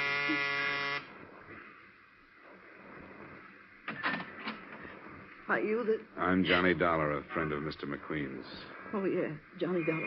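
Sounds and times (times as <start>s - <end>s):
harsh electric door buzzer: 0.0s - 1.1s
speech: 0.3s - 0.5s, 5.5s - 10.0s.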